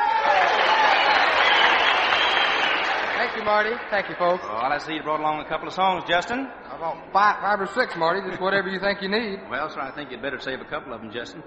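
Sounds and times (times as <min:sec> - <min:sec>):
audience applause welcoming a guest onto the Grand Ole Opry stage: 0:00.0 - 0:04.6
crowd noise: 0:00.0 - 0:11.4
speech: 0:03.4 - 0:11.4.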